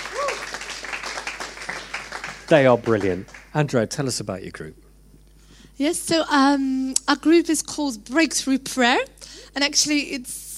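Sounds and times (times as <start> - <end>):
rising whoop or whistle: 0.0 - 0.5
audience clapping: 0.0 - 4.1
speech: 2.5 - 4.8, 5.8 - 10.5.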